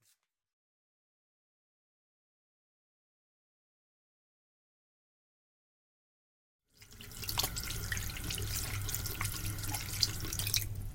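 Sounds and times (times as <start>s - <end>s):
washing hands at a running tap: 6.8s - 10.8s.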